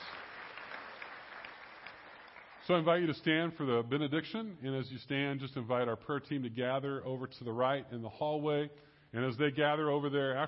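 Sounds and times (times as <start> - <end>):
applause: 0.0 - 3.2
speech: 2.7 - 10.4.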